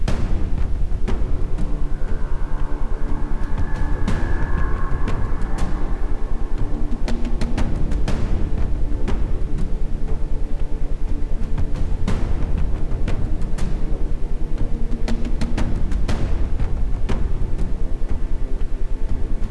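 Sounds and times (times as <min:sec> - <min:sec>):
ambient sound: 0:00.0 - 0:19.4
isochronic tones: 0:00.9 - 0:09.0.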